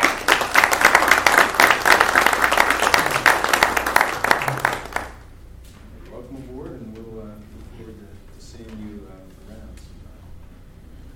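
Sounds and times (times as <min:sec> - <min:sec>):
applause: 0:00.0 - 0:05.3.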